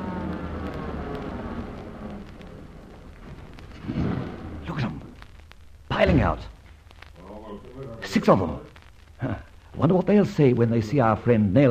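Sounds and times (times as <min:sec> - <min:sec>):
car pulling up to a stop: 0:00.0 - 0:04.7
speech: 0:06.2 - 0:06.6, 0:08.1 - 0:11.6.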